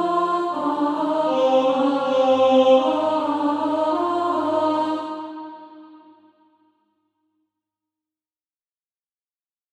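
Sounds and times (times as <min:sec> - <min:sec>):
alto voice singing practice music: 0:00.0 - 0:06.2.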